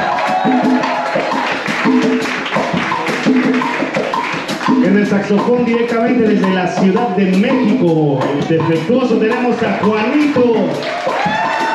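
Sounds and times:
audience applause: 0.0s - 5.2s, 9.6s - 11.7s
speech: 5.0s - 11.0s.

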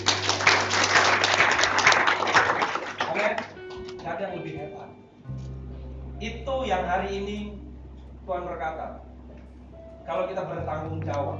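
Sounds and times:
audience applause: 0.0s - 3.8s
speech: 6.2s - 7.6s, 8.3s - 9.1s, 10.1s - 11.3s.

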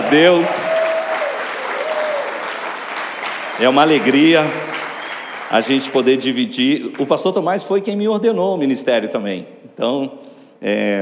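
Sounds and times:
audience applauding: 0.0s - 7.3s
speech: 0.1s - 0.8s, 3.6s - 4.7s, 5.5s - 10.9s.

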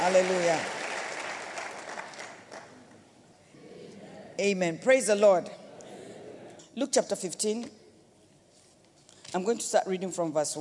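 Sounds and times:
audience clapping: 0.0s - 3.0s
speech: 0.1s - 0.8s, 4.4s - 5.6s, 6.8s - 7.8s, 9.3s - 10.5s.

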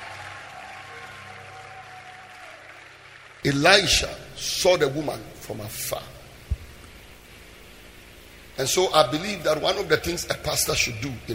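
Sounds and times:
audience clapping: 0.0s - 4.2s
speech: 3.4s - 6.2s, 8.6s - 11.3s.

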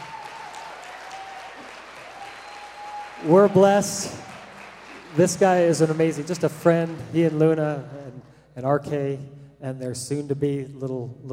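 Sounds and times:
church congregation applauding in welcome of a pastor: 0.0s - 8.1s
speech: 3.2s - 4.2s, 5.2s - 11.3s.

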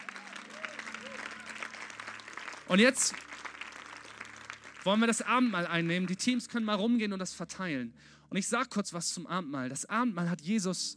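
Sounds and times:
small round of applause: 0.0s - 6.5s
speech: 2.7s - 3.3s, 4.8s - 10.9s.

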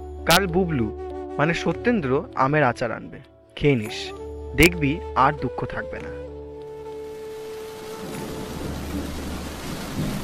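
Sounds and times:
speech: 0.2s - 6.3s
rain falling during a thunderstorm: 6.7s - 10.2s
deep sustained thunder rumble: 7.3s - 10.2s.

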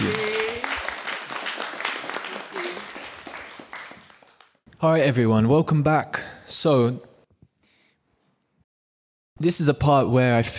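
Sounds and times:
crowd applause: 0.0s - 4.6s
speech: 4.8s - 7.1s, 9.4s - 10.5s.

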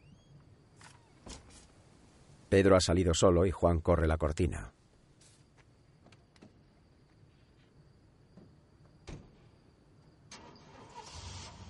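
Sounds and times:
speech: 2.5s - 4.8s
car engine starting: 10.3s - 11.6s.

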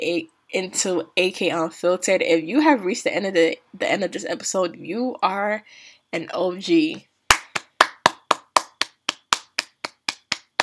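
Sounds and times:
speech: 0.0s - 7.1s
hand clapping: 7.3s - 10.6s.

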